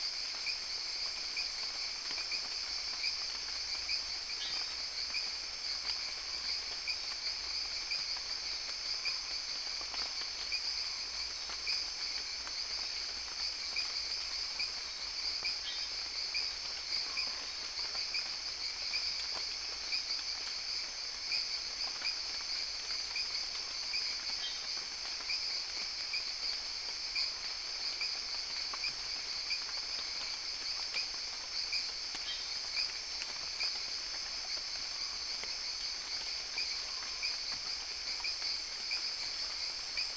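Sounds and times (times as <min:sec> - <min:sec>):
jungle frogs: 0:00.0 - 0:40.1
rain: 0:00.0 - 0:40.1.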